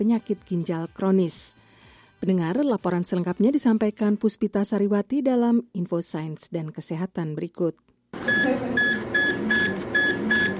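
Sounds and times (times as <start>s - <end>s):
speech: 0.0s - 1.6s, 2.2s - 8.9s
dialysis machine beeping at a hemodialysis centre in Yaounde Cameroon: 8.2s - 10.5s.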